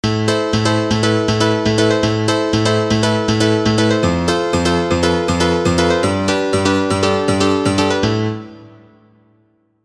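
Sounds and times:
M1 piano: 0:00.0 - 0:09.8.

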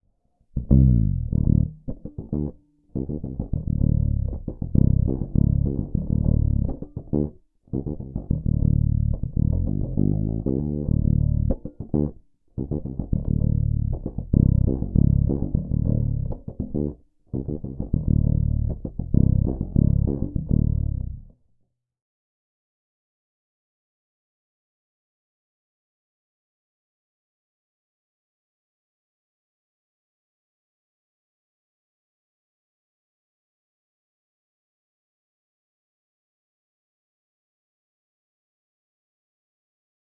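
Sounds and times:
five-string fretless bass groove with humbucker: 0:00.6 - 0:21.4.

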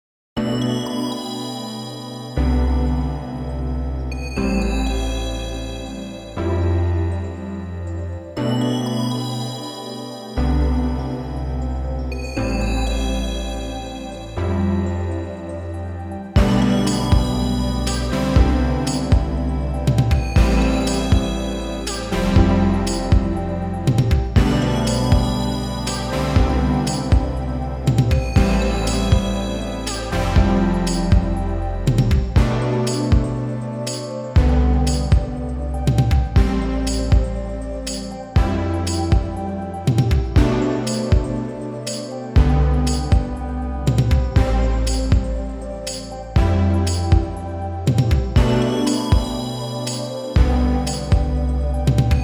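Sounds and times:
hardware synthesizers mix: 0:00.4 - 0:52.2.

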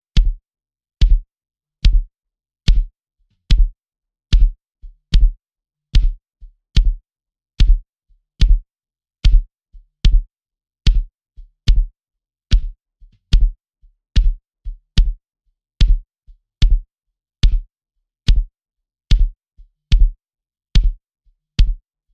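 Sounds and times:
bass drum with transient control: 0:00.1 - 0:00.4, 0:01.0 - 0:02.1, 0:02.7 - 0:02.9, 0:03.5 - 0:05.4, 0:06.8 - 0:07.0, 0:08.4 - 0:10.3, 0:10.9 - 0:11.1, 0:11.7 - 0:11.9, 0:12.5 - 0:13.6, 0:14.2 - 0:14.4, 0:15.0 - 0:15.2, 0:15.8 - 0:16.0, 0:16.6 - 0:17.7, 0:18.3 - 0:18.5, 0:19.1 - 0:20.2, 0:21.6 - 0:21.8.

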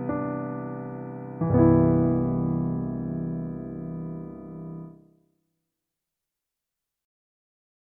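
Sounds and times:
Yamaha DGX670 CFX grand piano: 0:00.0 - 0:05.1.

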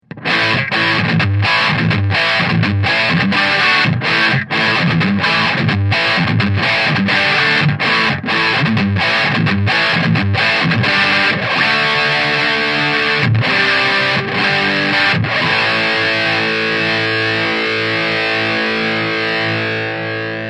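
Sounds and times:
heavy bias distortion sound: 0:00.0 - 0:20.4.

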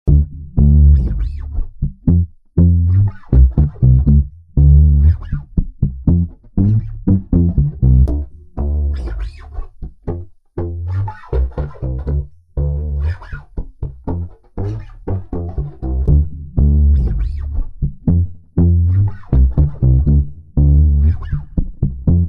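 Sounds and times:
bassline: 0:00.1 - 0:22.2.

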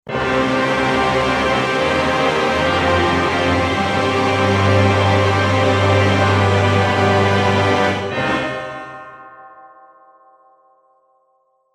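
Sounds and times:
big orchestra sustains: 0:00.1 - 0:09.5.

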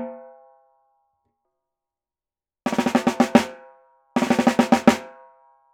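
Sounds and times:
Pearl 55x14 snare drum through CC 57 condenser microphone: 0:02.7 - 0:03.6, 0:04.2 - 0:05.2.

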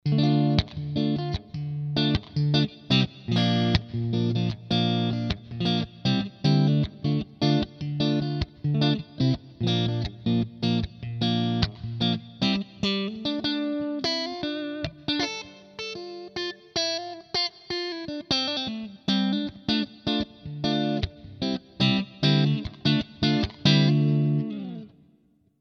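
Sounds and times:
Schecter guitar neck and middle pickup clean tone: 0:00.0 - 0:25.4.

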